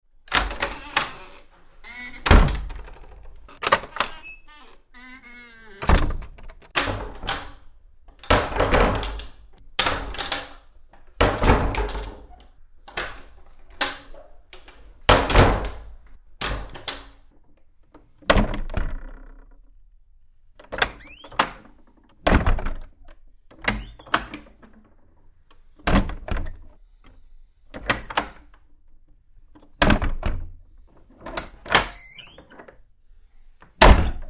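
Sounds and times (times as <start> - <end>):
latch doors opening and closing: 0.3 - 17.4, 20.6 - 26.8, 27.7 - 28.7, 29.5 - 30.5, 31.1 - 32.8.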